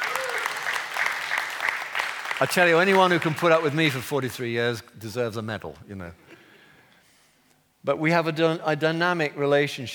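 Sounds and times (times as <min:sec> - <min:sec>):
audience applause: 0:00.0 - 0:04.2
speech: 0:02.4 - 0:06.3, 0:07.8 - 0:09.9.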